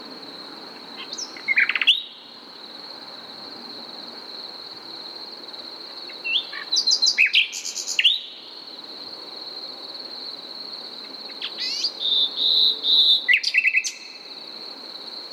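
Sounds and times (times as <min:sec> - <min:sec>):
Common nightingale Luscinia megarhynchos song: 0:00.7 - 0:02.4, 0:06.0 - 0:08.7, 0:11.1 - 0:14.5.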